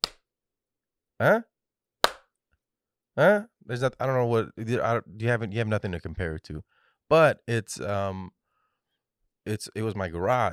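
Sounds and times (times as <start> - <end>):
hand claps testing room acoustics: 0.0 - 0.2, 2.0 - 2.2
speech: 1.2 - 1.5, 3.2 - 8.4, 9.4 - 10.5.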